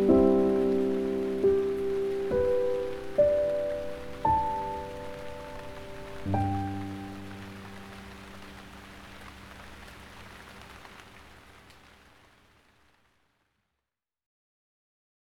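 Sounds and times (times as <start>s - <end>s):
gentle piano: 0.0s - 9.5s
rain: 0.0s - 13.7s.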